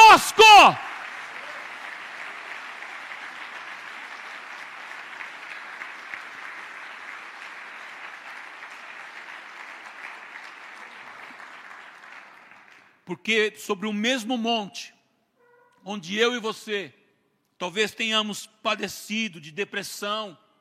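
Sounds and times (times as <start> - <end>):
audience applause: 0.0 - 12.9
speech: 0.2 - 0.8, 13.1 - 15.0, 15.8 - 17.0, 17.6 - 20.4.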